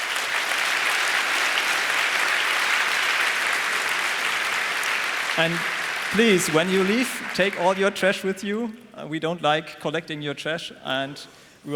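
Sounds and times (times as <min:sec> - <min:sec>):
audience applause: 0:00.0 - 0:08.5
speech: 0:05.4 - 0:11.7.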